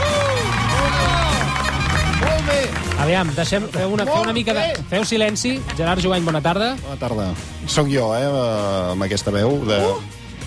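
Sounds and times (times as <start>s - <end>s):
studio audience applause: 0.0s - 5.4s
speech: 3.1s - 10.2s.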